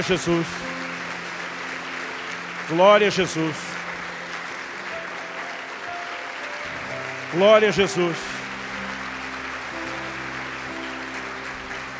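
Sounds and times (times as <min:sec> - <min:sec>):
speech: 0:00.0 - 0:00.8, 0:02.7 - 0:03.7, 0:07.3 - 0:08.3
audience applause: 0:00.0 - 0:11.9.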